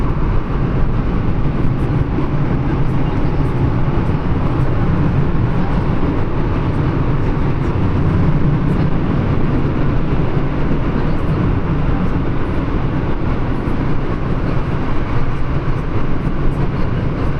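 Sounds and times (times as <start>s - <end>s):
London Tube train to Stansted: 0.0s - 17.3s.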